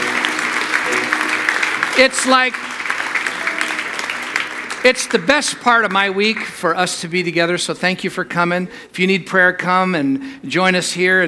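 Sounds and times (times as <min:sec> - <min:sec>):
audience clapping hands: 0:00.0 - 0:07.1
speech: 0:02.0 - 0:02.6, 0:04.8 - 0:11.2.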